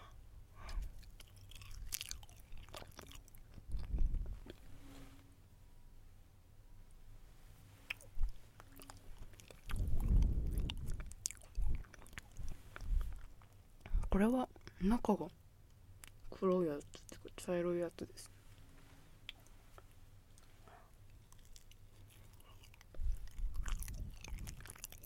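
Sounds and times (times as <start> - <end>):
biting and chewing a crackly snack stick: 0.6 - 4.6, 7.9 - 13.6, 21.1 - 25.0
speech: 14.2 - 15.4, 16.4 - 18.4.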